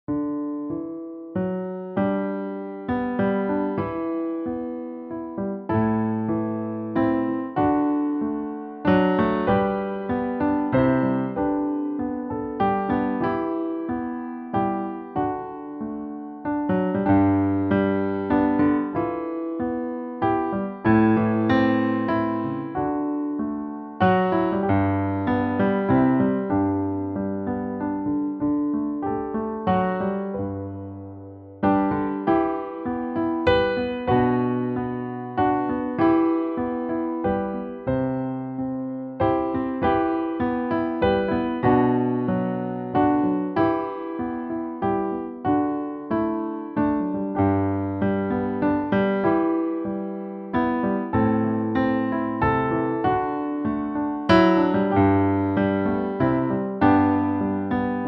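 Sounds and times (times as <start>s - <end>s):
piano folk tune: 0.0s - 58.0s.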